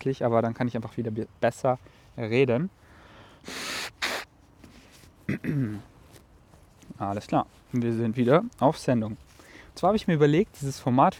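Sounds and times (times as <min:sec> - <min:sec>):
speech: 0:00.0 - 0:02.8, 0:03.4 - 0:03.6, 0:05.3 - 0:05.9, 0:06.9 - 0:11.1
sharp sniff: 0:03.0 - 0:05.1
person blowing nose: 0:03.4 - 0:04.3.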